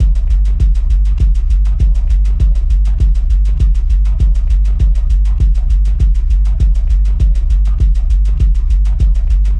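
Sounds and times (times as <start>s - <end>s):
techno music: 0.0s - 9.5s.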